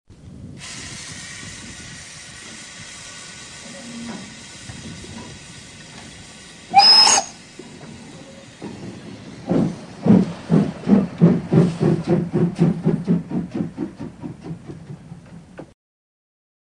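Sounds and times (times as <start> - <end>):
locomotive: 0.6 - 15.8.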